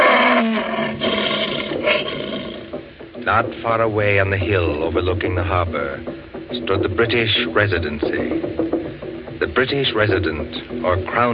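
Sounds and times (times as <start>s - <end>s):
lion roaring: 0.0s - 2.8s
speech: 3.3s - 8.7s, 9.4s - 11.3s.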